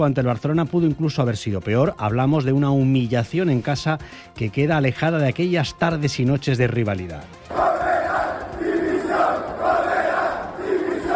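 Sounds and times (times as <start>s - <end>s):
speech: 0.0s - 7.6s
football fans chanting and shouting in protest outside stadium: 7.4s - 11.1s.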